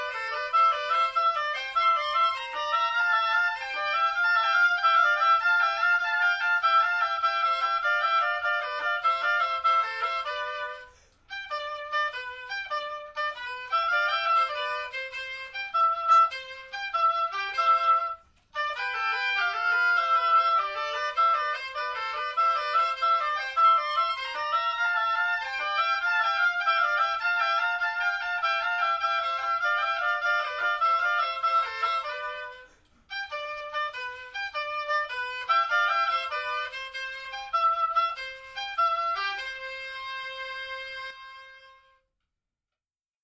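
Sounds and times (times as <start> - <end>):
oboe duet: 0.0 - 42.1.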